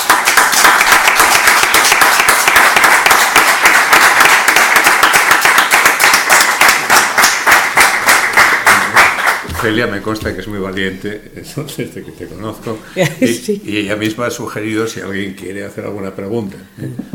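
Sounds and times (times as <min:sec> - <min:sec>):
audience applause: 0:00.0 - 0:10.2
speech: 0:09.6 - 0:17.1.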